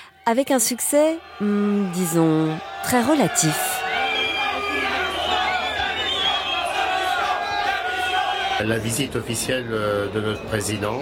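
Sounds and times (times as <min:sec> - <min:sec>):
speech: 0:00.2 - 0:03.7, 0:08.6 - 0:11.0
hostile crowd of exasperated livestock farmers shouting and jeering at the Salon de l'agriculture: 0:00.3 - 0:09.2.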